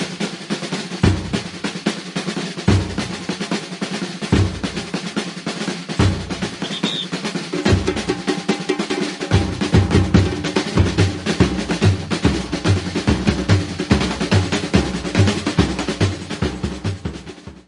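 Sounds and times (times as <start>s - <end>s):
fast batucada samba drumming: 0.0s - 17.6s
fast wings flapping by: 6.4s - 7.4s.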